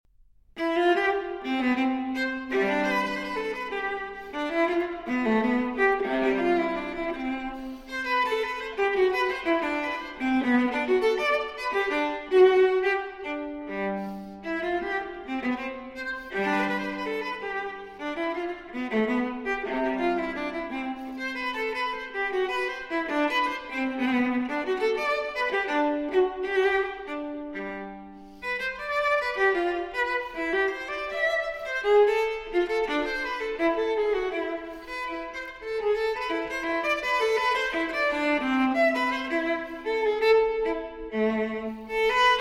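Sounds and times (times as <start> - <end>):
viola transcription of cello suite bourrée: 0.5 - 42.4.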